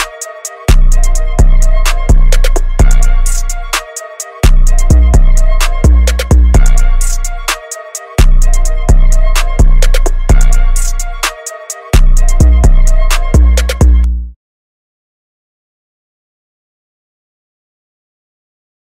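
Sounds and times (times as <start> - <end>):
instrumental music: 0.0 - 14.4.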